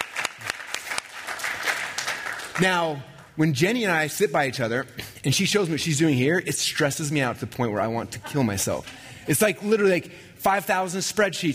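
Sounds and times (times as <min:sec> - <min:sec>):
audience round of applause: 0:00.0 - 0:02.6
speech: 0:02.6 - 0:11.5.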